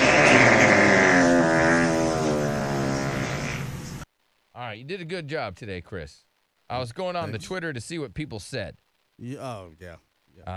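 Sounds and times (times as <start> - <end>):
fart: 0.0 - 4.0
speech: 4.7 - 10.5.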